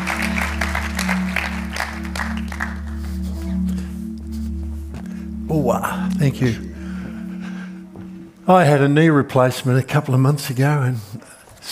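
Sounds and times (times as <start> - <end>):
audience applause: 0.0 - 3.4
speech: 5.5 - 6.7, 8.5 - 11.7.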